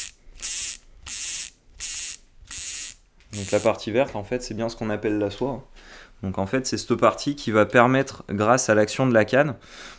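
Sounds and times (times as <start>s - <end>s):
fly fishing reel ratchet clicking as line is pulled out: 0.0s - 3.7s
speech: 3.3s - 9.9s.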